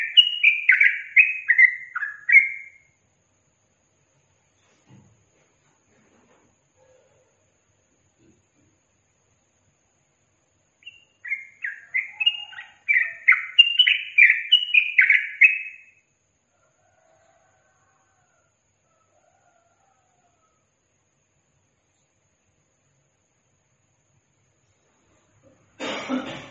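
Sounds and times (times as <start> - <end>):
yellow-vented bulbul singing: 0.0 - 2.9, 10.8 - 16.1.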